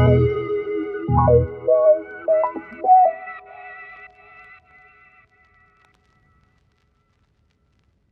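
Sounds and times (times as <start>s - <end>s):
pop songstarter in F#m: 0.0s - 3.9s.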